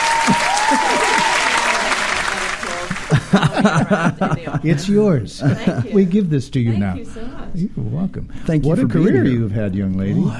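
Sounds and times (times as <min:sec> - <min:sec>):
audience applause for a musical theatre performer: 0:00.0 - 0:04.7
laughter: 0:00.0 - 0:07.2
speech: 0:03.3 - 0:10.3.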